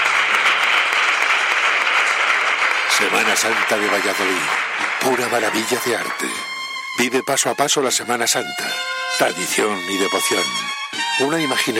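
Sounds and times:
studio applause: 0:00.0 - 0:09.1
speech: 0:03.0 - 0:11.7.

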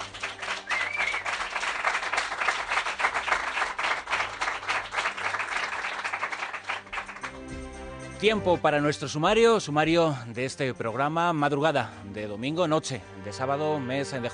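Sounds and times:
studio audience applause: 0:00.0 - 0:07.5
speech: 0:08.2 - 0:14.3.

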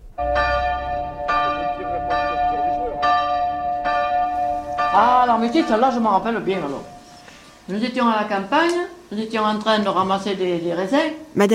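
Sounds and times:
church bell ringing: 0:00.0 - 0:08.3
speech: 0:05.0 - 0:06.9, 0:07.7 - 0:11.5.

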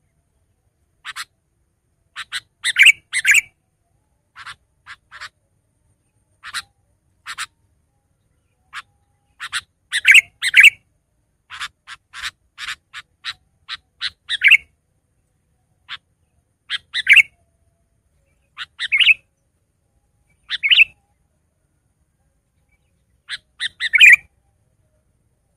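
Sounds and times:
Sooty-headed bulbul song of short bubbly phrases: 0:02.1 - 0:03.6, 0:08.2 - 0:10.8, 0:12.7 - 0:14.7, 0:16.7 - 0:17.4, 0:18.2 - 0:19.3, 0:20.3 - 0:21.2, 0:22.5 - 0:24.4.

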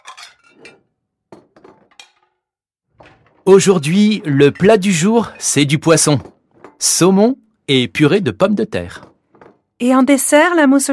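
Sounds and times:
glass, plates and cutlery clinking as a table is set: 0:00.0 - 0:03.4, 0:04.0 - 0:07.2
speech: 0:03.5 - 0:09.1, 0:09.8 - 0:10.9.

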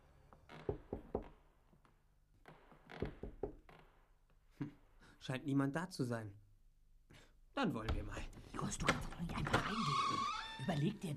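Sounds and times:
cautious knocking on a salon door of a villa: 0:00.7 - 0:01.4, 0:03.0 - 0:03.7, 0:07.8 - 0:09.1
speech: 0:05.2 - 0:06.4, 0:07.6 - 0:11.1.

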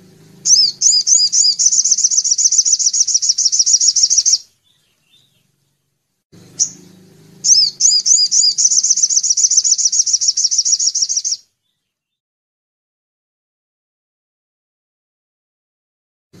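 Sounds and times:
Little spiderhunter singing high thin notes: 0:00.0 - 0:05.5, 0:06.5 - 0:12.0
low hum: 0:00.0 - 0:11.2.

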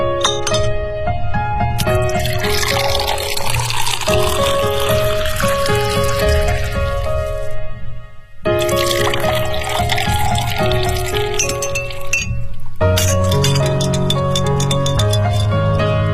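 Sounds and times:
bright ringing glassy taps: 0:00.2 - 0:00.7, 0:10.1 - 0:15.9
ice cubes clinking and rattling: 0:00.2 - 0:00.7, 0:01.8 - 0:07.6, 0:08.6 - 0:16.0
Negroni cocktail poured into a glass: 0:01.8 - 0:07.6, 0:08.5 - 0:15.8.

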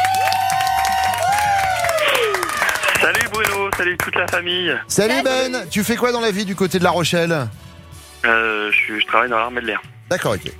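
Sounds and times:
studio applause in a radio show: 0:00.0 - 0:04.7
speech: 0:03.8 - 0:10.5.

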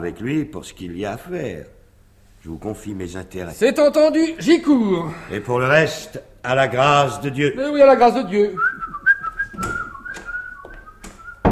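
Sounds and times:
speech: 0:00.0 - 0:01.8, 0:02.4 - 0:08.7
person whistling: 0:08.6 - 0:11.4.

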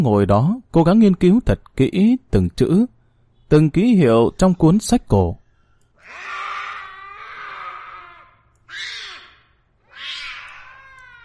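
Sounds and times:
speech: 0:00.0 - 0:05.4
black cat wailing with a baby-like cry at 2 a.m.: 0:06.0 - 0:11.2.

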